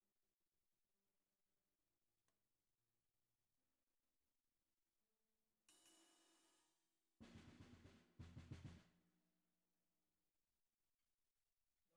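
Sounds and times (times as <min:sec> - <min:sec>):
bottom snare drum: 0:07.2 - 0:08.9.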